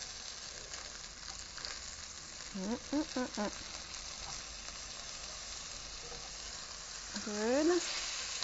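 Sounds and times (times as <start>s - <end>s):
chicken thigh frying in a pan: 0.0s - 8.4s
speech: 2.5s - 3.8s, 7.2s - 8.0s.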